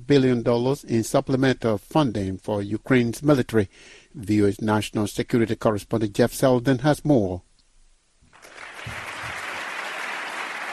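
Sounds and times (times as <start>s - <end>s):
speech: 0.1s - 7.5s
standing ovation for Volodymyr Zelensky at the National Defense University in Washington: 8.3s - 10.7s.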